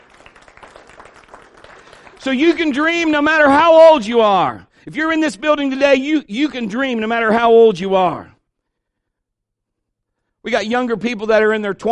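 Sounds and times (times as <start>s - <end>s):
audience hand clapping: 0.0s - 3.5s
speech: 2.2s - 8.4s, 10.4s - 11.8s.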